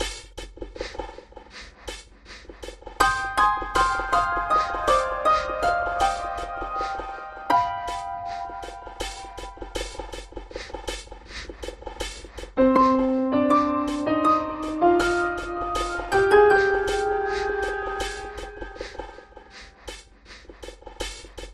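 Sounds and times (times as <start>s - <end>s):
piano: 3.0s - 11.4s, 12.0s - 20.4s.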